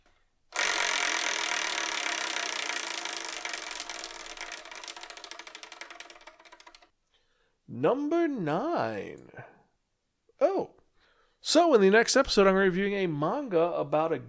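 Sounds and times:
selection wheel spinning and ticking to a stop: 0:00.0 - 0:06.9
speech: 0:07.7 - 0:09.5, 0:11.5 - 0:14.2.

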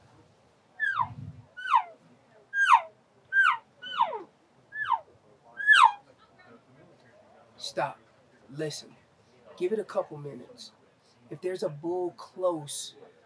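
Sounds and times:
soft elk cow calls imitated by mouth with the mouth covered: 0:00.8 - 0:02.0, 0:02.6 - 0:06.0
speech: 0:07.7 - 0:09.0, 0:09.6 - 0:13.1.

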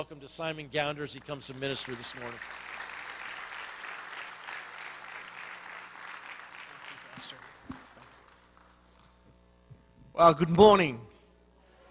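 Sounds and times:
speech: 0:00.0 - 0:02.8, 0:10.2 - 0:11.1
church congregation clapping to welcome a visiting speaker: 0:00.8 - 0:09.2.

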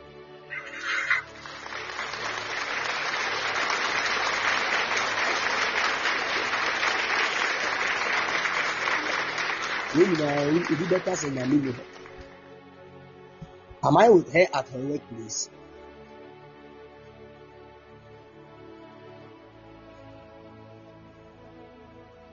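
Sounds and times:
congregation at a religious gathering clapping: 0:00.5 - 0:12.4
speech: 0:10.0 - 0:12.0, 0:13.8 - 0:15.6.

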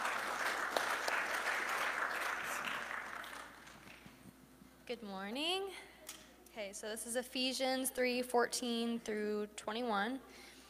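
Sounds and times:
audience applause welcoming a scripture reader to the stage: 0:00.0 - 0:04.0
speech: 0:04.9 - 0:05.9, 0:06.6 - 0:10.5.

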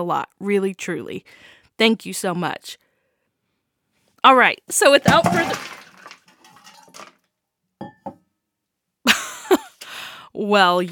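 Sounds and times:
speech: 0:00.0 - 0:02.8, 0:04.2 - 0:05.8, 0:10.4 - 0:10.9
cup clinks and knocks: 0:05.0 - 0:07.1, 0:07.8 - 0:08.2
cup of water spilled on floor: 0:05.0 - 0:07.1.

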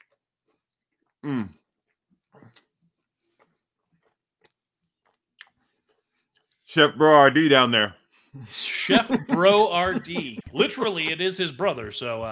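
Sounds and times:
person chewing a bite of bacon potatoes: 0:00.0 - 0:06.7
speech: 0:01.2 - 0:01.6, 0:06.8 - 0:12.3
person murmuring: 0:08.4 - 0:11.1
laughter: 0:08.4 - 0:12.0.

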